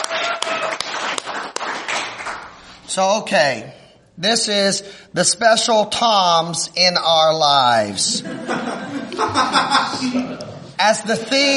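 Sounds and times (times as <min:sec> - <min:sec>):
audience applause: 0:00.0 - 0:02.5
speech: 0:02.9 - 0:11.5
laughter: 0:08.0 - 0:11.5.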